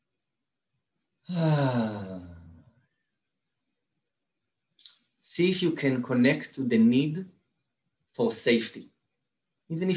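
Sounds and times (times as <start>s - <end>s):
speech: 1.3s - 2.0s, 5.4s - 7.4s, 8.2s - 8.9s, 9.7s - 9.9s
deep breath taken during guided meditation: 1.3s - 2.6s.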